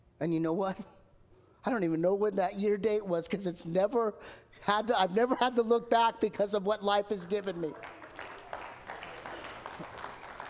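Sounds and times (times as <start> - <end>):
speech: 0.2 - 1.0, 1.6 - 8.0
audience clapping: 7.2 - 10.4.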